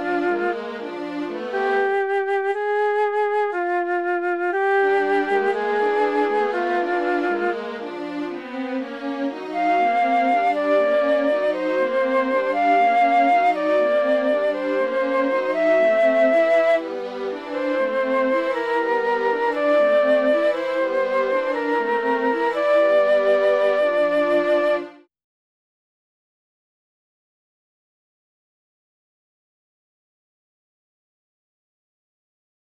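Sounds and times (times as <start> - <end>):
flute in a small piece: 0.0 - 25.1
violin in a small piece: 0.0 - 25.1.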